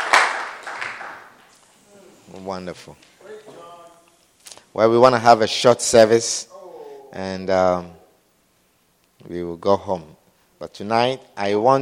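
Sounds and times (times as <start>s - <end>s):
audience clapping hands: 0.0s - 1.6s
speech: 2.3s - 3.2s, 4.7s - 6.5s, 7.1s - 8.0s, 9.2s - 11.8s.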